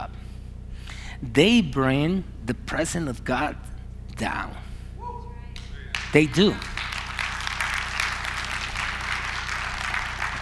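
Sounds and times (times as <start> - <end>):
low steady hum: 0.0 - 10.4
speech: 1.2 - 4.6, 6.1 - 6.8
crowd clapping: 5.6 - 10.4.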